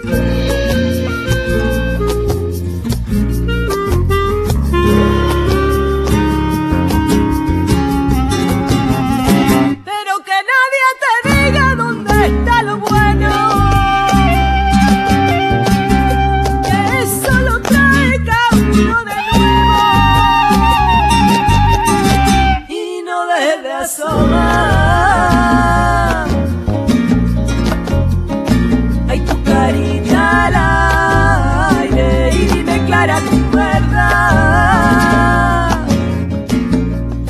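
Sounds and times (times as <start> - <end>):
chill flamenco music: 0.0 - 37.2.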